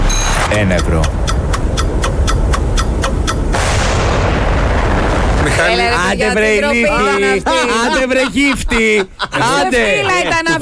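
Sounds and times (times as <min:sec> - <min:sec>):
ticking from the Beat the Bomb radio game: 0:00.0 - 0:03.7
speech: 0:00.5 - 0:01.3, 0:05.6 - 0:10.6
bomb explosion sound effect from the radio game Beat the Bomb: 0:03.5 - 0:06.8
laughter: 0:05.6 - 0:10.6.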